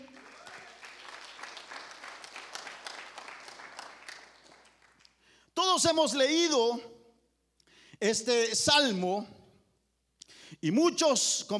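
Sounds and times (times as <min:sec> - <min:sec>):
audience clapping hands: 0:00.0 - 0:05.3
speech: 0:05.8 - 0:06.9, 0:08.0 - 0:09.4, 0:10.6 - 0:11.5.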